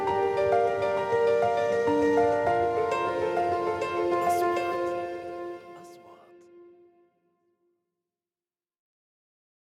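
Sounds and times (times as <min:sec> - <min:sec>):
corporate music: 0:00.0 - 0:06.4.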